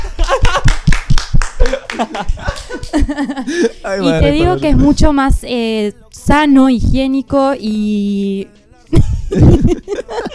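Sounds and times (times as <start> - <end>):
laughter: 0.0 - 0.8, 1.6 - 4.9, 8.9 - 10.3
speech: 0.3 - 0.7, 1.6 - 10.3
applause: 0.4 - 3.0.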